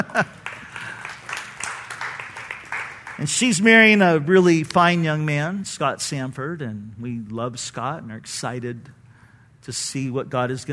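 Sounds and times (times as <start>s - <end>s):
speech: 0.0s - 0.4s, 3.2s - 9.0s, 9.6s - 10.7s
audience clapping: 0.0s - 5.2s.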